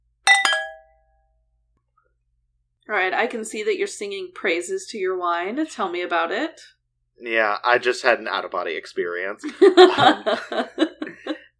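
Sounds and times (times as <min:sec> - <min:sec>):
wine glasses clinking in a toast: 0:00.3 - 0:00.9
speech: 0:02.9 - 0:11.3
laughter: 0:09.4 - 0:11.5.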